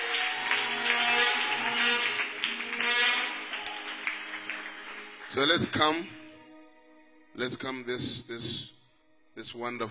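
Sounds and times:
audience clapping: 0.0s - 5.8s
speech: 5.4s - 6.2s, 7.4s - 8.8s, 9.4s - 9.8s.

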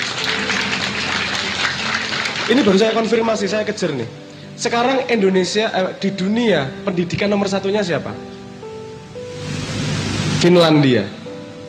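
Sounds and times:
audience applause: 0.0s - 3.4s
speech: 2.5s - 8.4s, 10.4s - 11.2s.

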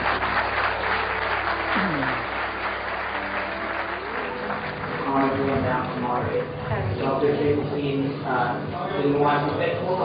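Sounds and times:
loud audience applause: 0.0s - 7.2s
murmur of voices: 0.0s - 10.0s.

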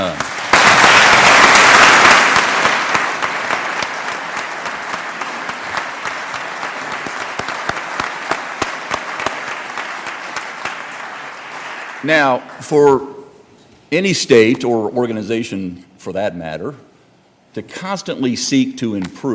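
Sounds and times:
audience applause: 0.0s - 12.6s
speech: 12.1s - 13.1s, 13.9s - 16.9s, 17.5s - 19.3s.

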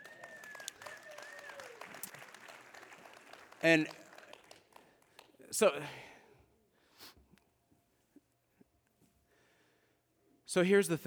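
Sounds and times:
audience clapping: 0.0s - 5.4s
speech: 3.6s - 4.0s, 5.6s - 6.1s, 10.5s - 11.0s.

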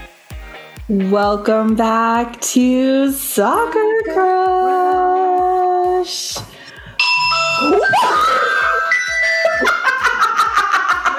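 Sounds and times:
speech: 0.9s - 5.4s, 6.0s - 6.5s, 7.6s - 8.7s
phone ringtone: 7.0s - 9.8s
laughter: 7.6s - 11.1s.

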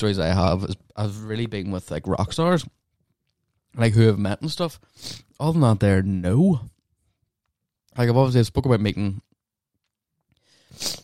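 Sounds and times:
speech: 0.0s - 2.8s, 3.7s - 6.7s, 8.0s - 9.3s, 10.7s - 11.0s
nasal sniff: 4.9s - 5.2s, 10.5s - 11.0s.

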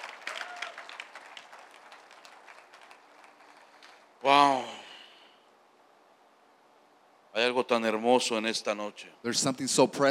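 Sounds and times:
church congregation clapping at an evening service: 0.0s - 4.1s
speech: 4.2s - 4.8s, 7.5s - 10.0s.

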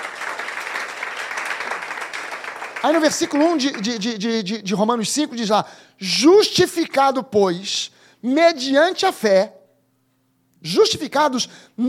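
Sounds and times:
audience applauding: 0.0s - 4.3s
speech: 2.8s - 9.6s, 10.6s - 11.8s.

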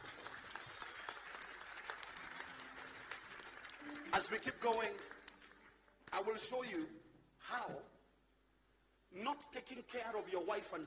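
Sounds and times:
audience clapping hands: 0.0s - 6.4s
speech: 4.2s - 5.1s, 6.2s - 7.9s, 9.1s - 10.8s.

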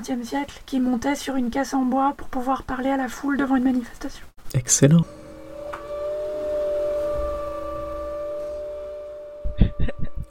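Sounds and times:
speech: 0.0s - 5.2s
wind blowing: 5.0s - 10.2s.

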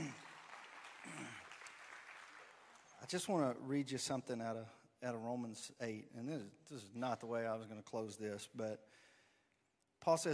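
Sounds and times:
audience applause: 0.0s - 3.0s
speech: 3.1s - 9.1s, 10.0s - 10.3s.

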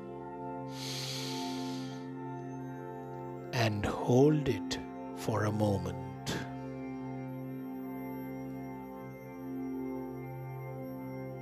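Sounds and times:
sustained musical drone: 0.0s - 11.4s
deep inhale during a guided self-compassion breathing meditation: 0.7s - 2.2s
speech: 3.6s - 6.1s.

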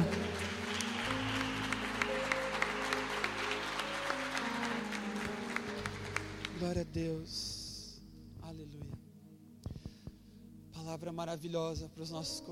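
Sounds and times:
audience clapping: 0.0s - 6.9s
sustained keyboard chords: 0.0s - 12.5s
speech: 6.6s - 7.6s, 10.9s - 12.5s.

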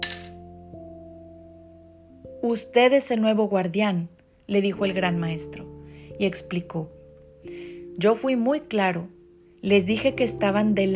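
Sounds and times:
drinking glass thrown to the floor clinking: 0.0s - 0.4s
speech: 2.4s - 7.0s, 8.0s - 10.9s.

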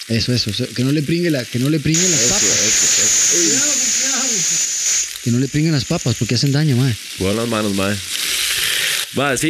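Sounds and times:
speech: 0.1s - 3.8s, 5.3s - 8.2s, 9.1s - 9.4s
pressure cooker hissing steam: 2.0s - 6.9s.

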